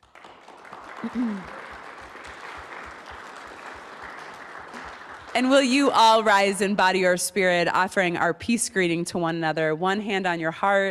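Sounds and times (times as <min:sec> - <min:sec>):
round of applause: 0:00.0 - 0:06.0
speech: 0:01.0 - 0:01.6, 0:05.4 - 0:10.8.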